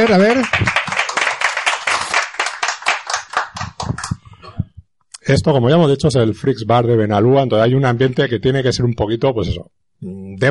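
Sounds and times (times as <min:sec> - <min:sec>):
speech: 0:00.0 - 0:00.8, 0:05.3 - 0:10.4
audience clapping: 0:00.0 - 0:04.4.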